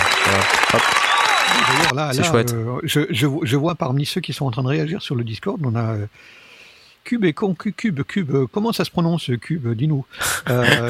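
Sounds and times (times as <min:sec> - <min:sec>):
loud dense applause: 0:00.0 - 0:01.9
speech: 0:00.4 - 0:06.5, 0:07.1 - 0:10.8
laughter: 0:10.4 - 0:10.8.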